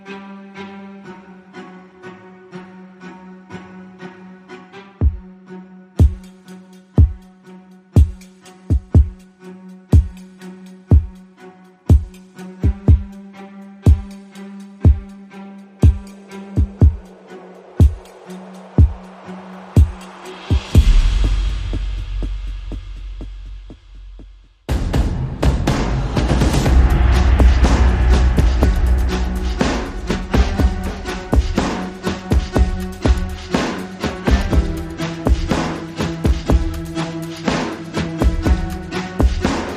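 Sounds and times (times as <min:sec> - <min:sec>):
strings: 0:00.0 - 0:39.7
drums: 0:05.0 - 0:05.2, 0:06.0 - 0:07.3, 0:08.0 - 0:09.3, 0:09.9 - 0:11.2, 0:11.9 - 0:13.2, 0:13.8 - 0:15.2, 0:15.8 - 0:39.7.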